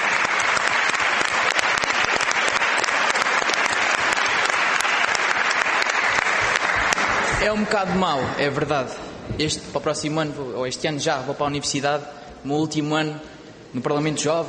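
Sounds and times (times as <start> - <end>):
audience applause: 0.0 - 8.6
speech: 7.4 - 14.4.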